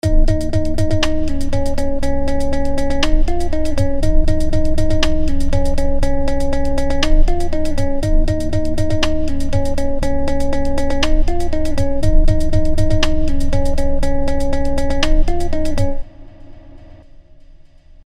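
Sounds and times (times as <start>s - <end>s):
TimeShaper 2 rhythmic pattern: 0.0s - 17.0s.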